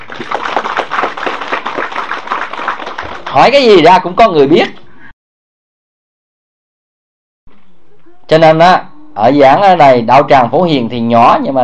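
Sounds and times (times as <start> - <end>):
round of applause: 0.0 - 3.6
speech: 3.4 - 4.8, 8.4 - 11.6.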